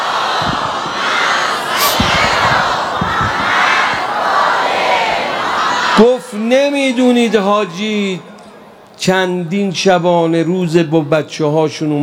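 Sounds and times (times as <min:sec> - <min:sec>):
large crowd chanting a loud salawat in unison: 0:00.0 - 0:06.4
speech: 0:06.0 - 0:08.3, 0:09.0 - 0:12.0.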